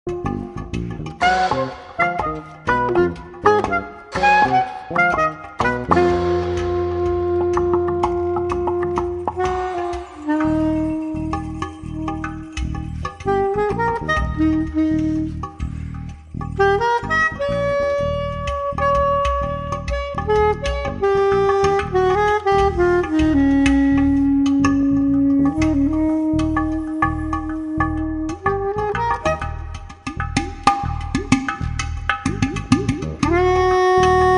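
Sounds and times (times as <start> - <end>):
jazz music: 0.0 - 34.3.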